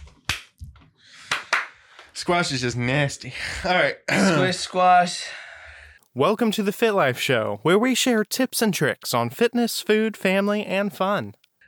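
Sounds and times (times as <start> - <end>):
sharp hand claps: 0.0 - 2.1
speech: 2.2 - 5.4, 6.1 - 11.4.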